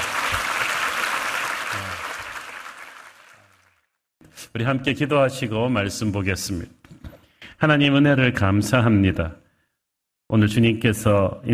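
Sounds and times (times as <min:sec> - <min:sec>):
audience clapping: 0:00.0 - 0:04.0
speech: 0:04.6 - 0:06.8, 0:07.6 - 0:09.4, 0:10.3 - 0:11.5.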